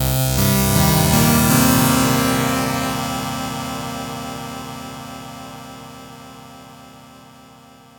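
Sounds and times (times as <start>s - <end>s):
oscillator effects: 0.0s - 4.3s.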